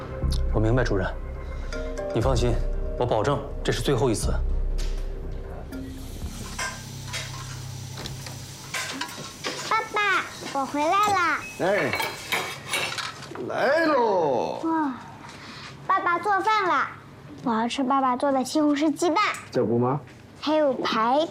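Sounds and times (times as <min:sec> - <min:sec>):
speech: 0:00.3 - 0:04.9, 0:10.7 - 0:12.2, 0:13.4 - 0:15.1, 0:16.1 - 0:21.2
cutlery and dishes clinking in a home kitchen: 0:06.4 - 0:13.4.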